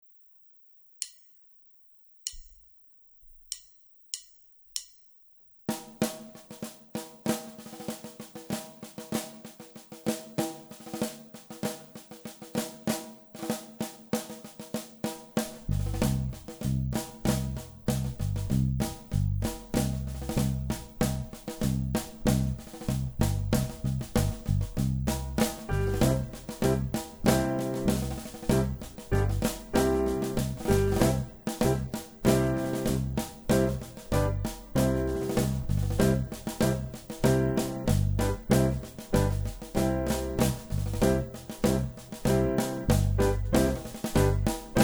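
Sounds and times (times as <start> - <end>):
drum: 5.7 - 44.8
trumpet: 25.7 - 44.8.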